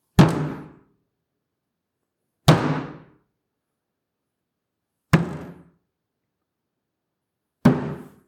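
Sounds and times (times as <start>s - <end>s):
fist punching a table: 0.2s - 0.8s, 2.5s - 3.1s, 5.2s - 5.7s, 7.6s - 8.2s.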